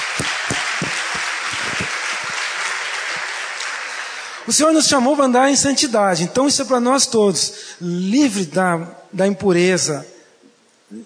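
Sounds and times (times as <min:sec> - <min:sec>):
audience applause: 0:00.0 - 0:04.5
speech: 0:04.5 - 0:10.2.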